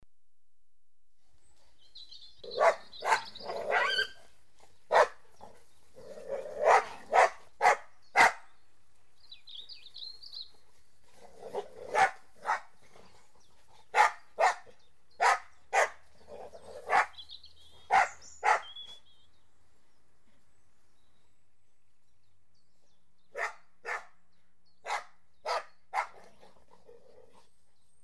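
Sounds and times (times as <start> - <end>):
dog barking: 2.4 - 4.2, 4.9 - 5.2, 6.6 - 8.5, 11.5 - 12.7, 13.9 - 16.0, 16.8 - 17.2, 17.8 - 18.8, 23.3 - 24.2, 24.8 - 26.3.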